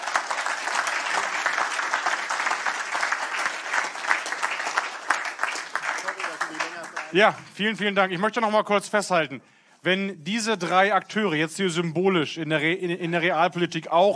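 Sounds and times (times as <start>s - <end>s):
audience applause: 0.0s - 7.5s
speech: 7.1s - 14.1s.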